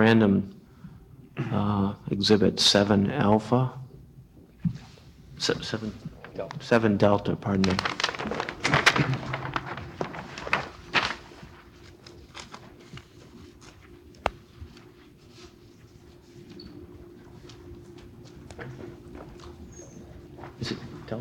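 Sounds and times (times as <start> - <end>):
speech: 0.0 - 0.6, 1.4 - 3.8, 4.6 - 4.8, 5.4 - 8.4
papers shuffling: 5.6 - 21.1.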